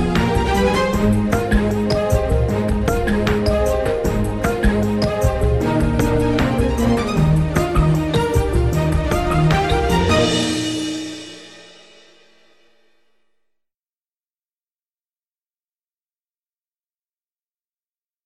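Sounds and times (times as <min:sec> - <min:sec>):
instrumental music: 0:00.0 - 0:13.3.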